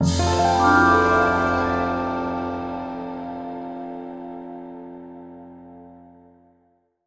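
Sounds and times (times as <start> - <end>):
game stinger for a new perk: 0.0 - 5.8.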